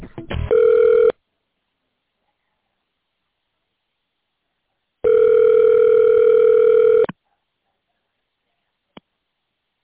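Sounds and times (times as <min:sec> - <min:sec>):
telephone-line music-like tones while a call is placed to a doctor's office extension: 0:00.5 - 0:01.1, 0:05.1 - 0:07.1.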